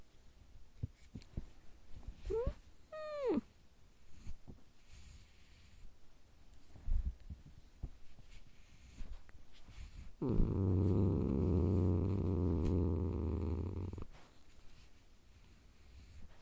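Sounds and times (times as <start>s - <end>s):
domestic cat growling: 2.3s - 3.5s, 10.2s - 14.1s.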